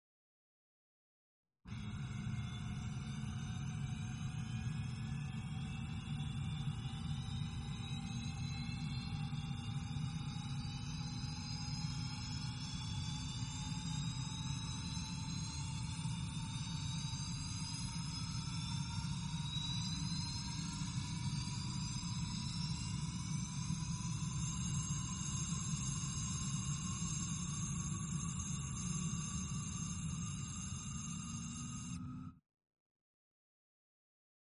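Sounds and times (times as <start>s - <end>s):
airplane: 1.7s - 32.4s.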